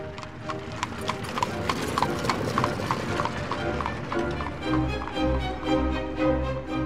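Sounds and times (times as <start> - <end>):
mail coach wheels rumbling: 0.0 - 6.8
starved horse's hooves clip-clopping pulling a mail coach: 0.0 - 6.8.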